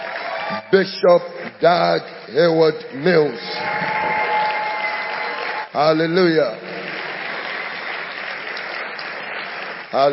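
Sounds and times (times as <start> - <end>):
audience applause: 0.0 - 1.0, 3.1 - 10.1
speech: 0.5 - 4.0, 5.8 - 6.6, 9.9 - 10.1.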